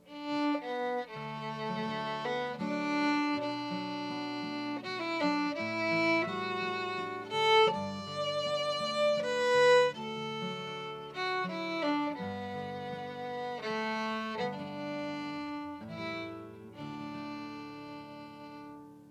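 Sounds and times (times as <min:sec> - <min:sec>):
fiddle: 0:00.0 - 0:19.0.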